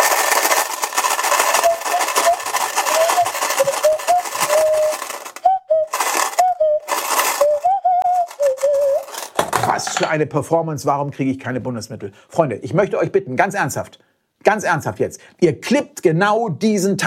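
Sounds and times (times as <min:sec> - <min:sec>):
coins shaken in a case: 0:00.0 - 0:07.6, 0:08.2 - 0:09.4
nose flute melody: 0:01.2 - 0:09.3
speech: 0:10.0 - 0:17.0.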